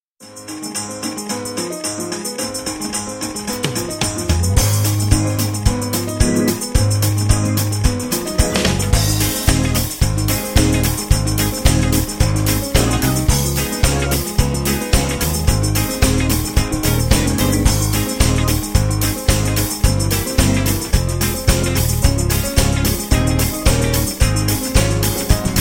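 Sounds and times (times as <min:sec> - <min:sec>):
backing track without brass: 0:00.2 - 0:25.5.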